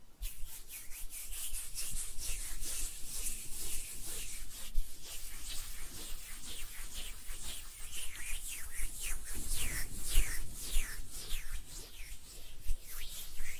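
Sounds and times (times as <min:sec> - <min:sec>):
hands rubbing and brushing against each other: 0:00.2 - 0:13.5.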